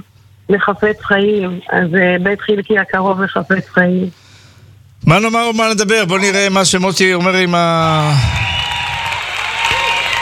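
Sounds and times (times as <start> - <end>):
speech: 0.5 - 4.2, 5.0 - 8.5
stormy audience applause: 8.0 - 10.1.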